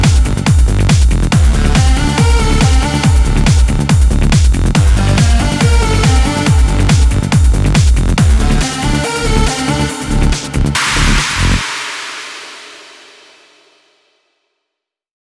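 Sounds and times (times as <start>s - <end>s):
complete music mix at 140 BPM in D minor: 0.0s - 13.5s.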